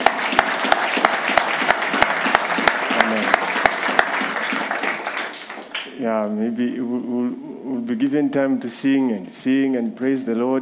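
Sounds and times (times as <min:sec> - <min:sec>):
audience clapping: 0:00.0 - 0:06.0
speech: 0:06.1 - 0:10.5.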